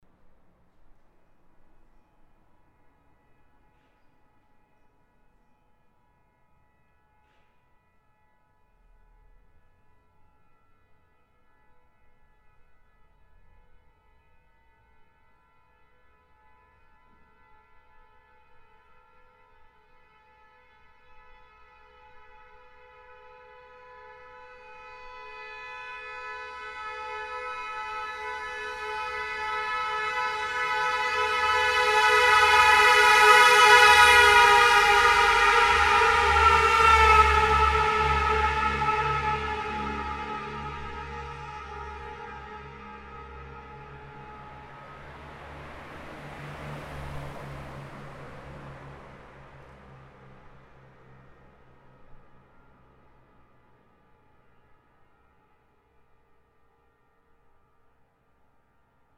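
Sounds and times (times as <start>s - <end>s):
two stuck horns passing with Doppler effect: 25.0s - 52.2s.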